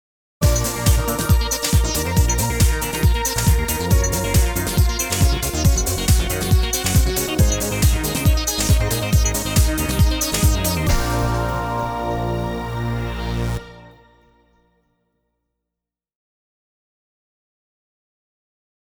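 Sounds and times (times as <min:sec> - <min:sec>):
music loop: 0:00.4 - 0:14.1.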